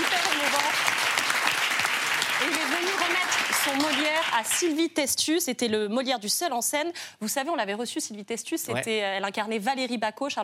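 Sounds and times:
applause from a large crowd: 0:00.0 - 0:04.6
speech: 0:03.7 - 0:10.4.

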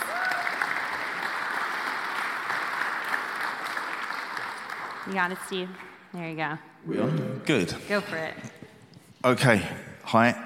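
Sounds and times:
audience applause for a speaker: 0:00.0 - 0:06.0
speech: 0:05.1 - 0:08.5, 0:09.2 - 0:10.4.

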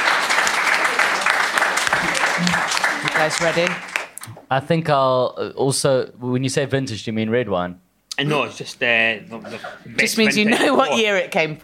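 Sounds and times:
audience applause: 0:00.0 - 0:04.2
speech: 0:02.4 - 0:03.9, 0:04.5 - 0:11.6.

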